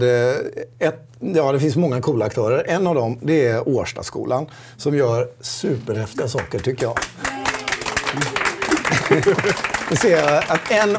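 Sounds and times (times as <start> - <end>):
speech: 0.0 - 7.5, 8.1 - 10.9
audience applause: 6.2 - 10.9
laughter: 7.2 - 10.9.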